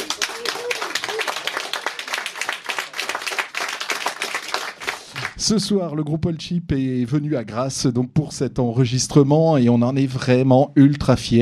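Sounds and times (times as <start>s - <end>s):
audience applause for the band: 0.0s - 5.4s
speech: 5.4s - 11.4s.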